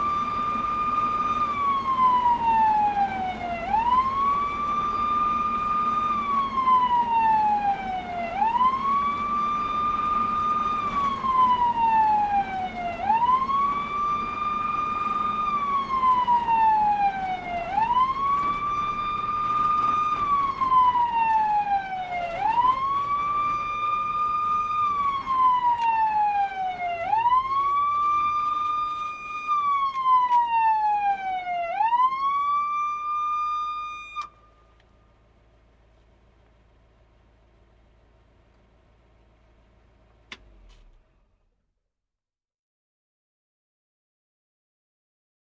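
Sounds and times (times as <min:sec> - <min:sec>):
fire truck cockpit startup: 0:00.0 - 0:34.7.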